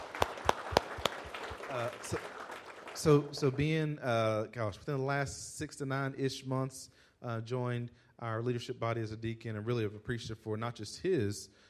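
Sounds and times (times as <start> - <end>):
audience clapping: 0.0 - 3.8
speech: 1.7 - 2.4, 3.0 - 11.6.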